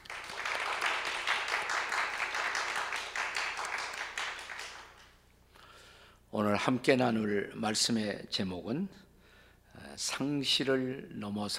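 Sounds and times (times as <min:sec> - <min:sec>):
audience welcoming applause: 0:00.0 - 0:05.2
speech: 0:06.4 - 0:09.0, 0:10.0 - 0:11.5.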